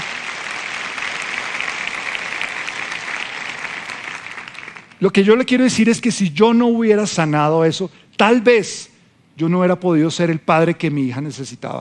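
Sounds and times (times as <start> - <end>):
audience applause: 0.0 - 5.0
speech: 5.0 - 11.8.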